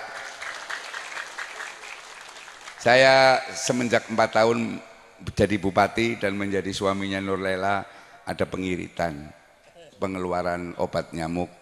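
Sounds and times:
crowd clapping: 0.0s - 3.4s
speech: 2.8s - 9.4s, 10.0s - 11.6s.

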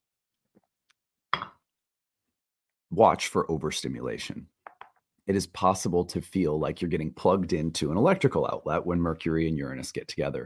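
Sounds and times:
cup clinks and taps: 1.4s - 1.6s
speech: 3.0s - 4.6s, 5.3s - 10.4s.

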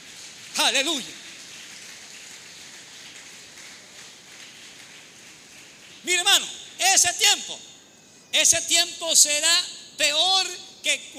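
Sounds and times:
audience applause: 0.0s - 6.0s
speech: 0.7s - 1.2s, 6.0s - 11.1s.

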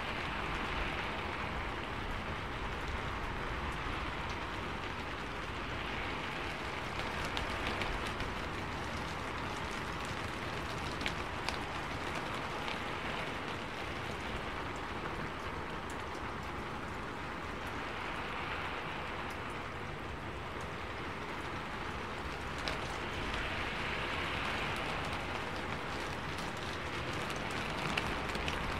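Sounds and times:
rain pattering: 0.0s - 28.7s.

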